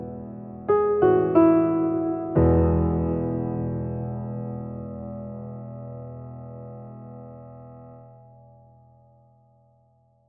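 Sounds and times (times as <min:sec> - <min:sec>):
solo piano piece: 0:00.0 - 0:09.4.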